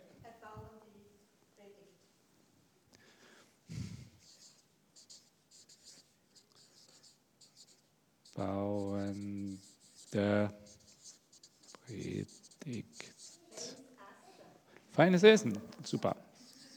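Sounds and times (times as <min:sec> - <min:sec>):
breathing: 0:02.9 - 0:04.6, 0:13.6 - 0:15.0
pen or chalk strokes on paper or board: 0:03.7 - 0:16.7
speech: 0:10.1 - 0:10.6, 0:15.0 - 0:16.2.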